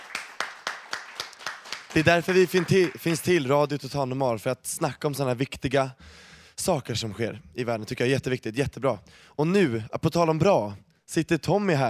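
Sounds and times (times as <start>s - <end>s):
applause hand claps: 0.0s - 3.4s
speech: 2.0s - 11.8s.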